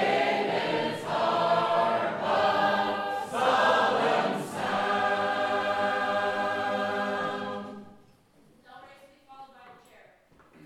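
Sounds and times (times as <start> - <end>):
Sacred Harp shape-note choir singing: 0.0 - 8.0.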